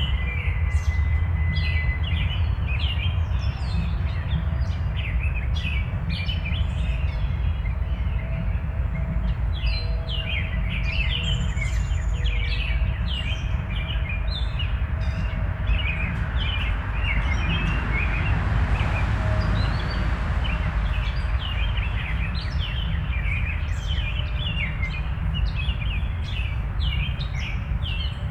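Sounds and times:
birds chirping: 0:00.0 - 0:28.2
deep continuous rumble: 0:00.0 - 0:28.2.

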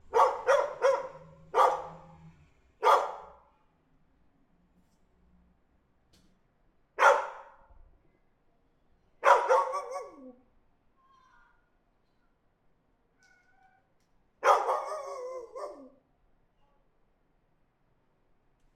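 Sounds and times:
dog barking in an alley: 0:00.0 - 0:02.2, 0:02.8 - 0:03.5, 0:07.0 - 0:07.6, 0:09.2 - 0:10.4, 0:14.4 - 0:16.0.

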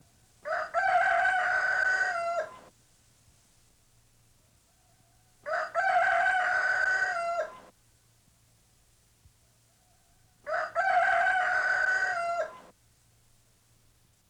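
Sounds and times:
rooster crowing: 0:00.4 - 0:02.7, 0:05.4 - 0:07.7, 0:10.4 - 0:12.7.

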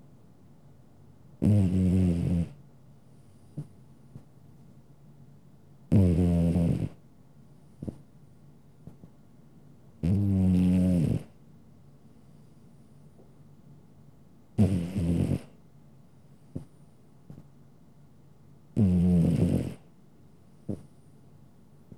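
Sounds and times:
domestic cat snoring: 0:01.4 - 0:02.6, 0:05.9 - 0:07.0, 0:10.0 - 0:11.3, 0:14.6 - 0:15.6, 0:18.8 - 0:19.9.

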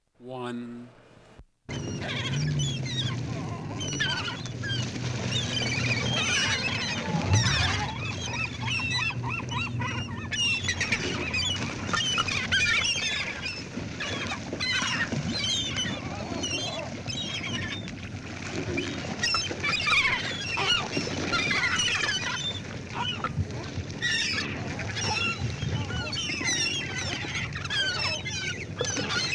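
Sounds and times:
speech: 0:00.2 - 0:01.0, 0:01.7 - 0:02.7
low rumble: 0:01.7 - 0:10.6
gulls squealing: 0:01.7 - 0:18.0, 0:18.8 - 0:29.3.

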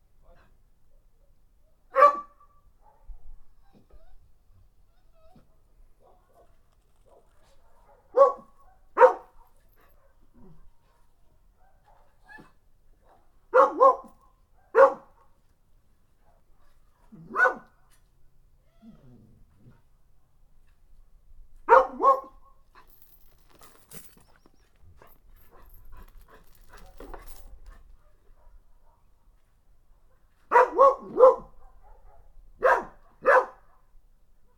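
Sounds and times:
dog barking: 0:01.9 - 0:03.2, 0:06.0 - 0:10.2, 0:11.6 - 0:15.3, 0:17.2 - 0:17.7, 0:21.7 - 0:22.4, 0:28.0 - 0:29.2, 0:30.0 - 0:33.9.

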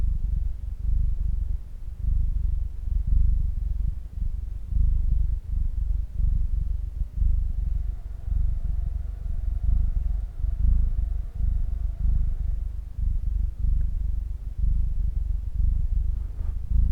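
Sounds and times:
cat purring: 0:00.0 - 0:16.9.

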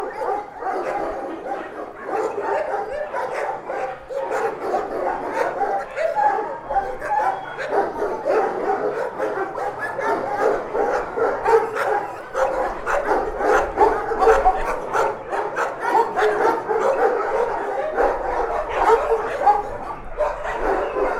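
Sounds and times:
dogs barking in a shelter: 0:00.0 - 0:21.1.

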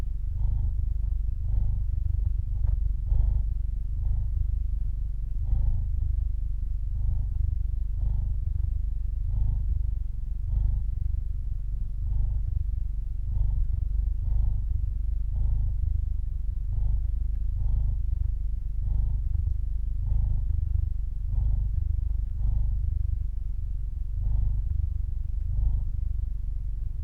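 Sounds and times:
cat purring: 0:00.0 - 0:27.0.

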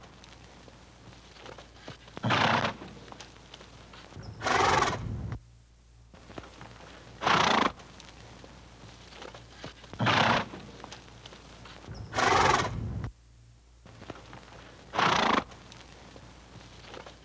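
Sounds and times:
horse snorting: 0:02.2 - 0:03.0, 0:04.2 - 0:05.4, 0:07.2 - 0:07.8, 0:10.0 - 0:10.8, 0:11.9 - 0:13.1, 0:14.9 - 0:15.6.

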